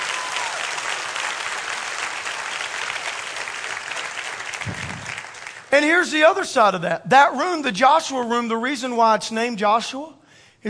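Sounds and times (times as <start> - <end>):
audience clapping: 0.0 - 5.8
speech: 5.7 - 10.6.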